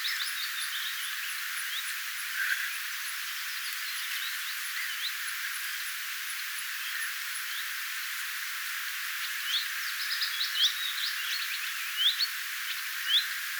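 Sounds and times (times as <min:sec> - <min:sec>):
willow warbler song: 0:00.0 - 0:13.5.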